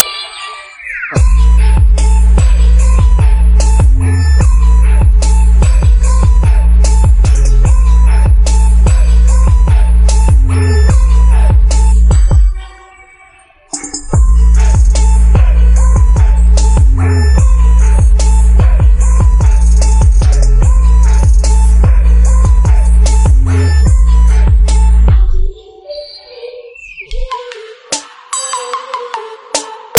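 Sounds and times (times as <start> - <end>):
christmas instrumental music: 0.0 - 25.0.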